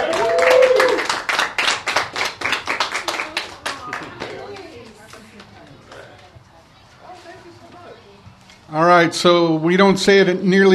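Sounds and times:
audience applause: 0.0s - 4.9s
speech: 9.0s - 10.7s.

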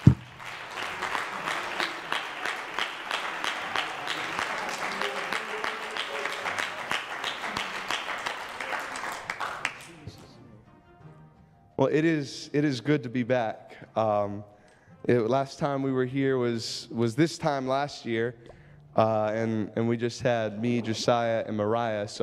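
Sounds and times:
crowd applauding: 0.0s - 10.3s
speech: 11.8s - 22.2s.

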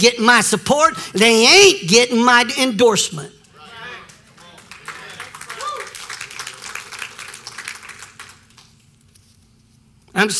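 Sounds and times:
speech: 0.0s - 3.4s, 10.2s - 10.3s
audience hand clapping: 3.4s - 9.0s.

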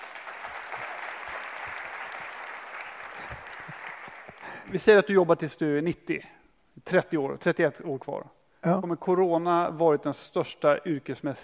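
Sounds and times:
applause: 0.0s - 4.7s
speech: 4.7s - 11.4s.

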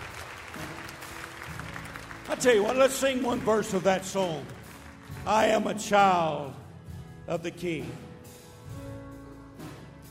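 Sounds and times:
audience clapping hands in praise: 0.0s - 5.9s
speech: 2.3s - 4.6s, 5.2s - 6.6s, 7.3s - 8.0s.

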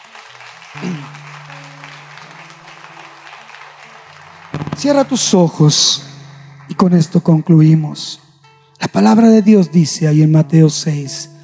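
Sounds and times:
audience applause: 0.0s - 8.0s
speech: 0.7s - 1.1s, 4.8s - 6.1s, 6.7s - 8.2s, 8.8s - 11.3s.

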